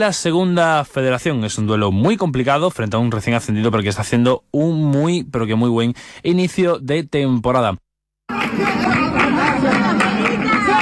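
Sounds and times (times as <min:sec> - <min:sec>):
speech: 0:00.0 - 0:10.0
crowd chatter at night outside the Peña de la Bulería flamenco club in Jerez: 0:08.3 - 0:10.7.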